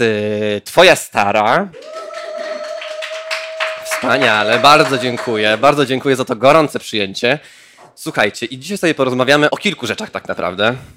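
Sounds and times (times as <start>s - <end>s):
speech: 0.0s - 1.9s, 4.0s - 10.9s
applause: 1.8s - 5.9s.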